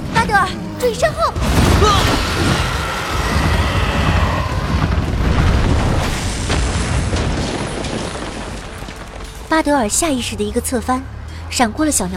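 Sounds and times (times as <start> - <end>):
speech: 0.3 - 2.8, 9.5 - 12.1
huge creature crashing into rubble ruins: 1.4 - 9.5.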